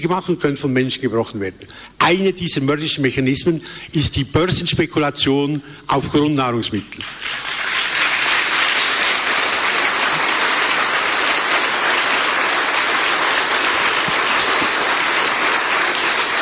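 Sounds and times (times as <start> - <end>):
speech: 0.0 - 7.4
audience applause: 7.0 - 16.4.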